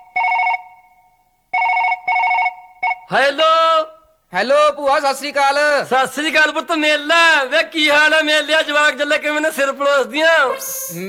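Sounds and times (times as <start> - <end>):
ringback tone of an outgoing telephone call: 0.0 - 3.1
speech: 3.1 - 11.0.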